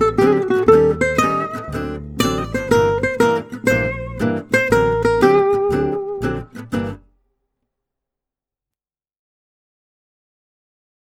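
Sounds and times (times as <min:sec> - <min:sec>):
minor blues with solo: 0:00.0 - 0:07.1.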